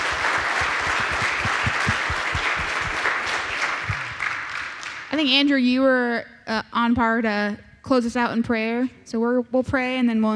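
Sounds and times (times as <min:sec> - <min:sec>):
audience applause: 0:00.0 - 0:05.1
speech: 0:05.2 - 0:10.3.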